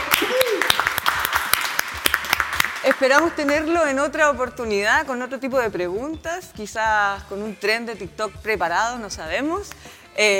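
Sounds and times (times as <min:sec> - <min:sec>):
vocal cheer: 0:00.0 - 0:00.8
applause from a few people: 0:00.0 - 0:03.7
speech: 0:03.0 - 0:10.3.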